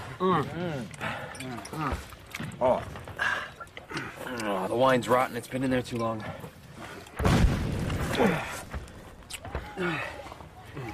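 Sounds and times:
speech: 0.2s - 3.1s, 3.9s - 6.4s, 8.2s - 8.6s, 9.8s - 10.2s
big trench mortar shell exploding near a shallow mountain dugout: 7.2s - 8.5s
scattered thuds and rustling: 7.2s - 9.8s.

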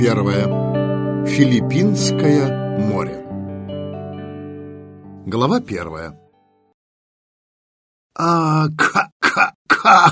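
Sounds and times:
speech: 0.0s - 0.7s, 1.3s - 3.2s, 5.3s - 6.2s, 8.2s - 10.1s
person choking coughing fit: 8.7s - 10.1s.

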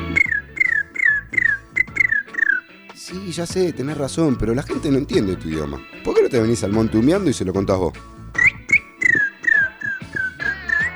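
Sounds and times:
whistled imitation of a little bird's call: 0.0s - 2.7s, 8.4s - 10.9s
speech: 3.1s - 8.1s.

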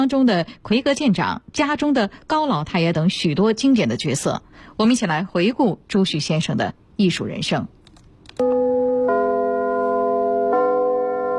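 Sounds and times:
speech: 0.0s - 7.8s, 8.4s - 8.8s
theatre curtain-opening bell ringing at the Capital Theatre in Beijing: 8.4s - 11.3s.

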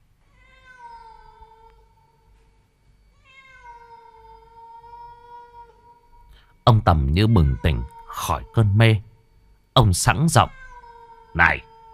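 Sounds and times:
cat yowling mournfully: 0.4s - 2.2s, 3.2s - 6.3s, 7.1s - 8.8s, 10.4s - 11.9s
speech: 6.7s - 9.1s, 9.8s - 10.6s, 11.4s - 11.7s.

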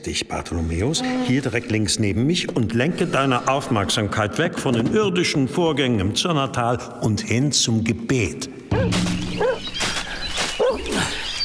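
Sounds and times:
speech: 0.0s - 9.5s
dog that has found something yipping: 8.8s - 9.7s, 10.6s - 10.9s.

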